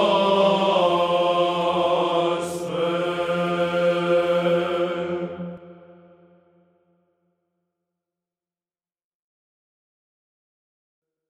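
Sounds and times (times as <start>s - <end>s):
Orthodox troparion chant: 0.0s - 6.6s.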